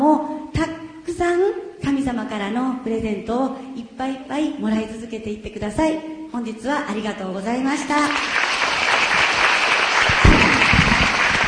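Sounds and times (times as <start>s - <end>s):
speech: 1.2s - 8.4s
audience applause: 8.1s - 11.4s.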